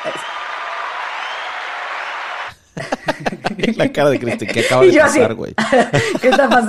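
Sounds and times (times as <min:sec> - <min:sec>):
canned applause sound effect: 0:00.0 - 0:02.6
laughter: 0:02.7 - 0:06.6
speech: 0:03.6 - 0:06.6.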